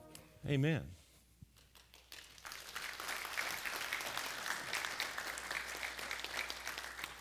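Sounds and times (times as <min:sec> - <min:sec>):
speech: 0:00.4 - 0:01.0
audience applause: 0:01.7 - 0:07.1.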